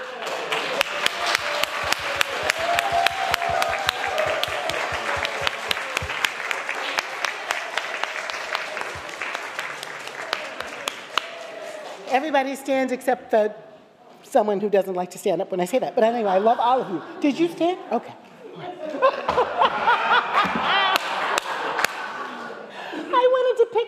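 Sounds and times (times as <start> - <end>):
audience clapping: 0.0 - 12.1, 20.8 - 22.6
speech: 12.2 - 13.7, 14.3 - 18.2
laughter: 16.2 - 17.7, 18.4 - 23.1.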